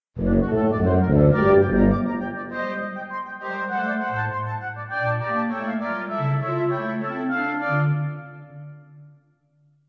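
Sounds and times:
instrumental music: 0.1s - 9.8s.

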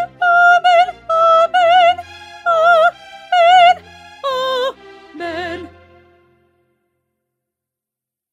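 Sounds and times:
soprano singing: 0.0s - 6.5s.

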